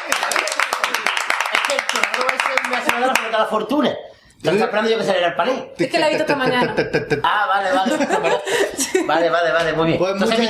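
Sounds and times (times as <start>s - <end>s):
crowd clapping: 0.0s - 3.5s
speech: 1.9s - 10.4s
laughter: 6.0s - 9.4s.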